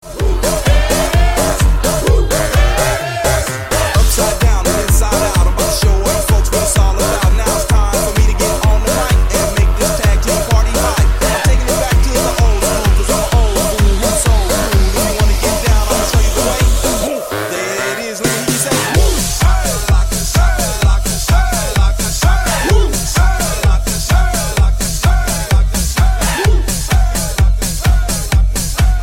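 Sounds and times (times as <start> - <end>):
remix: 0.0 - 29.0.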